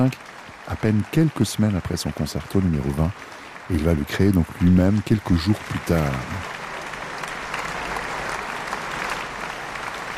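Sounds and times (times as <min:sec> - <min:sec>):
speech: 0:00.0 - 0:06.5
warm audience applause after concerto: 0:00.0 - 0:10.1.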